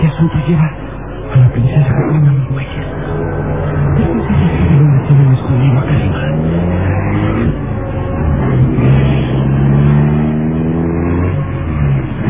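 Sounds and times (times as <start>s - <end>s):
luxurious black car's engine revving as it pulls away: 0.0s - 12.2s
speech: 0.2s - 0.8s, 1.4s - 3.0s.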